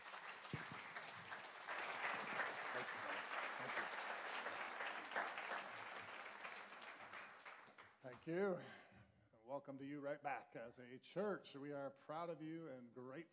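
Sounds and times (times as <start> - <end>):
church congregation applauding a guest at an installation and ordination service: 0.0 - 8.3
speech: 8.2 - 8.8, 9.5 - 13.3.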